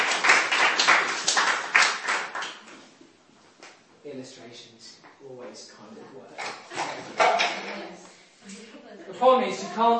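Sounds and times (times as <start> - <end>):
audience applause: 0.0 - 2.6
speech: 4.2 - 7.2, 7.8 - 9.9.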